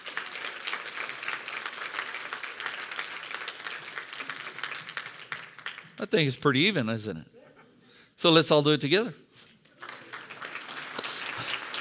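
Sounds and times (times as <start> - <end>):
audience clapping hands: 0.0 - 6.4, 9.7 - 11.7
speech: 6.0 - 7.4, 8.2 - 9.2.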